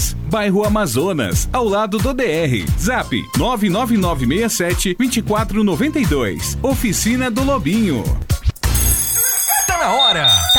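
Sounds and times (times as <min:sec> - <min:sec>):
speech: 0:00.3 - 0:08.4, 0:09.8 - 0:10.5
alarm clock ringing in a radio advert: 0:08.6 - 0:10.5.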